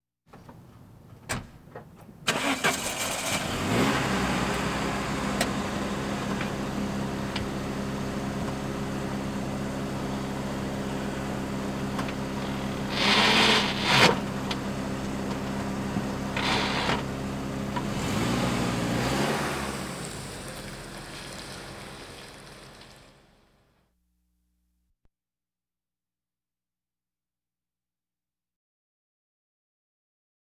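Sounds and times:
various automobiles: 2.1s - 23.6s.

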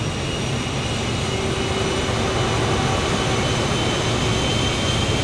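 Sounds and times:
train leaving, heard outside: 0.2s - 5.2s.

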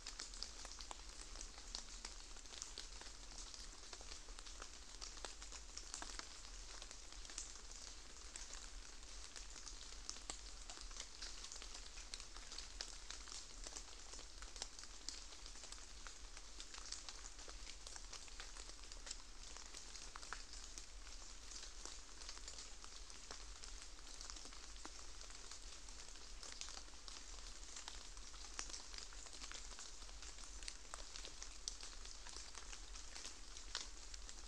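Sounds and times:
very light rain patters in the aftermath of rain: 0.0s - 34.4s.

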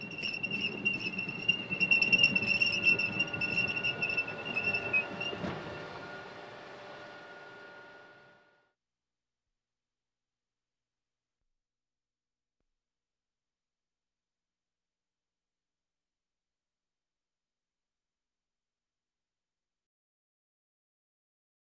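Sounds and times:
military vehicles: 0.0s - 8.5s.

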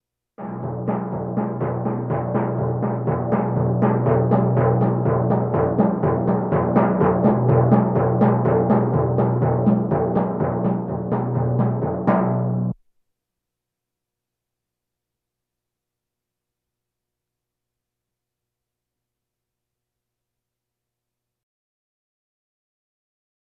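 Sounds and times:
bongos: 0.4s - 12.8s
drums: 0.4s - 12.8s.

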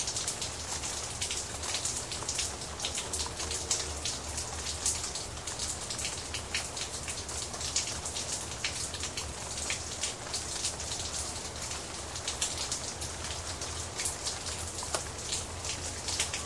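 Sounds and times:
light traffic: 0.0s - 16.4s
rain: 0.0s - 16.4s.

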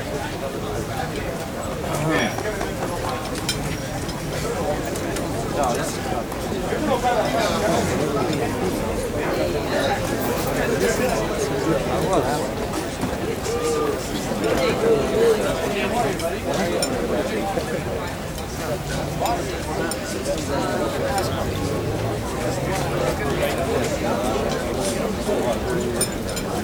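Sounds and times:
crowd walla on a restaurant outdoor patio: 0.0s - 26.6s.

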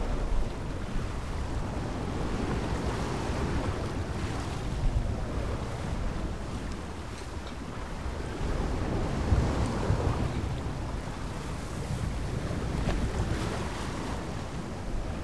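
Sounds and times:
waves around a sailboat: 0.0s - 15.2s.

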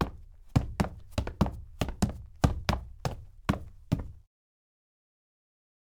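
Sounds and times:
sneaker footsteps on hard wood: 0.0s - 4.2s.

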